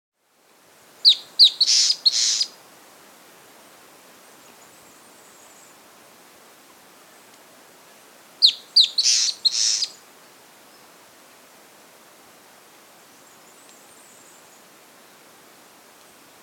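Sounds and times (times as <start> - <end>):
long-tailed antbird singing sharp chirping notes: 1.0 - 2.5, 8.4 - 10.0.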